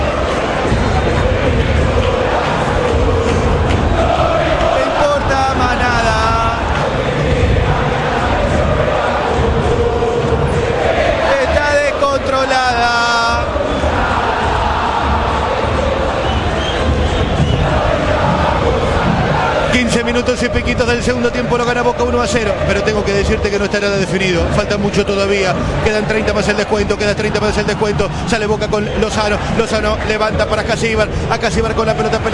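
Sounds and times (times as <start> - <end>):
packed stadium crowd cheering and applauding: 0.0 - 32.3
crowd whistles: 16.2 - 17.7
speech: 20.9 - 32.3.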